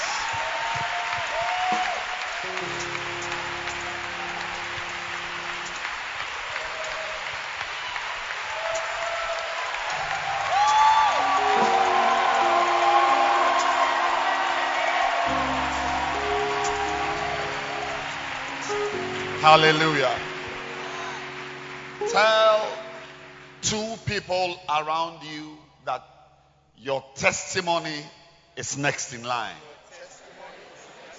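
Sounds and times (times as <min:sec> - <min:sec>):
faint cheers: 0:00.0 - 0:23.3
audience clapping hands: 0:00.0 - 0:24.0
low sustained musical tones: 0:02.4 - 0:06.9, 0:10.0 - 0:25.8
speech: 0:19.5 - 0:20.2, 0:23.7 - 0:26.0, 0:26.8 - 0:29.7.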